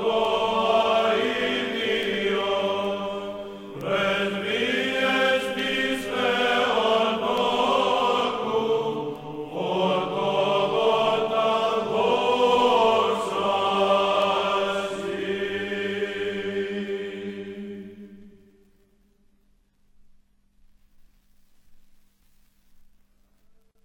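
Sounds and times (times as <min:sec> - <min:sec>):
Greek church service chanting: 0:00.0 - 0:18.8.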